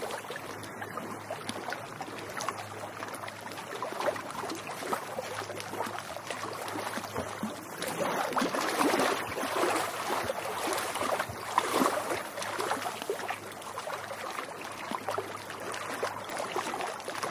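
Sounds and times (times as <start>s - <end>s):
water lapping at a lake's edge: 0.0s - 17.3s.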